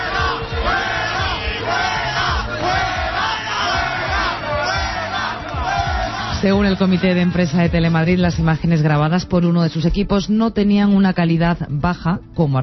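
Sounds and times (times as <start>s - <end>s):
large crowd booing and jeering: 0.0s - 7.7s
speech: 6.4s - 12.6s.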